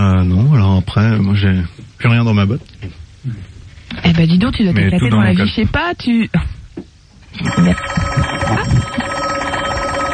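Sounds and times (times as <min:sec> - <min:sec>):
speech: 0:00.9 - 0:09.0
telephone on a direct line ringing in a studio: 0:07.4 - 0:10.1.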